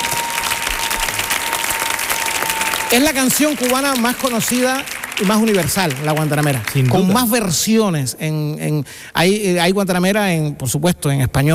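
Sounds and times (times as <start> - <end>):
crowd clapping for a singer of Cuban country music: 0.0 - 7.8
speech: 2.9 - 11.5.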